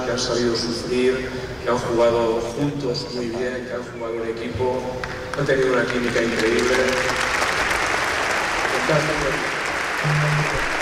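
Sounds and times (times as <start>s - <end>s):
speech: 0.1s - 7.2s, 8.9s - 10.8s
applause for players: 5.0s - 10.8s.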